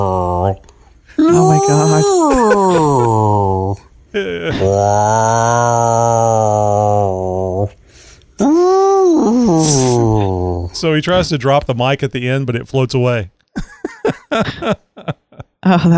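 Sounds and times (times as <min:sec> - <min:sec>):
human voice imitating whale song: 0:00.0 - 0:00.6, 0:01.2 - 0:07.8, 0:08.4 - 0:10.8
speech: 0:00.0 - 0:06.2, 0:10.8 - 0:13.7, 0:14.3 - 0:15.9
laughter: 0:01.2 - 0:03.4, 0:13.6 - 0:15.9.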